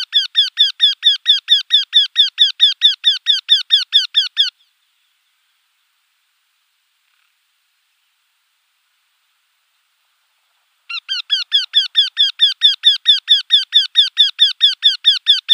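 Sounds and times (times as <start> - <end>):
Eurasian wryneck display call: 0.0 - 4.7, 10.8 - 15.5.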